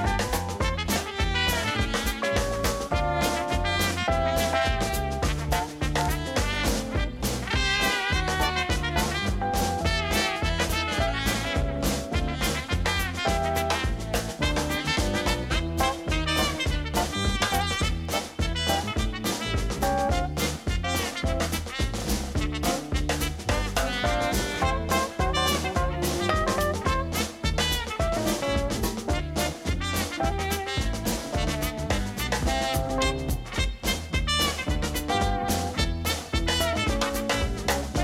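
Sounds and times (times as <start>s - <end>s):
jazz music: 0.0s - 38.0s.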